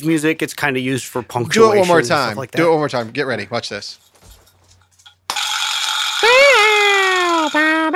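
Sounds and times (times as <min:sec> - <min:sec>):
speech: 0:00.0 - 0:04.1
vibraslap percussion rattle: 0:05.0 - 0:07.8.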